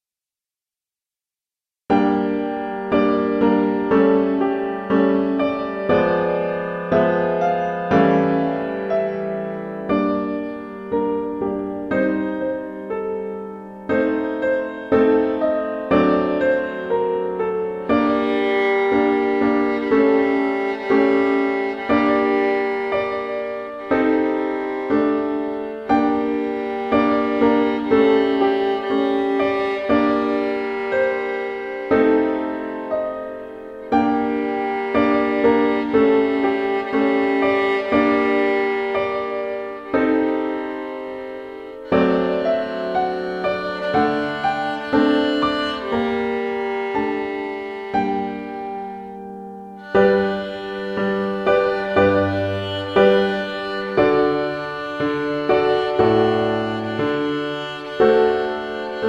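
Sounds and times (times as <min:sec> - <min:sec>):
piano: 0:01.9 - 0:59.0
violin: 0:01.9 - 0:59.0.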